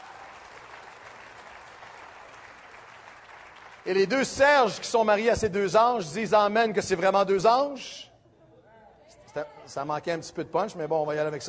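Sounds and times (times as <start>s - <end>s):
audience applause: 0.0s - 4.1s
speech: 3.8s - 8.1s, 9.3s - 11.4s.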